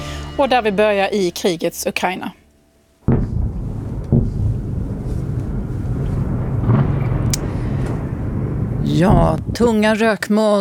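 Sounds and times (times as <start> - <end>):
speech: 0.4 - 2.4, 8.9 - 10.5
ballistic missile attack explosions: 3.0 - 10.2.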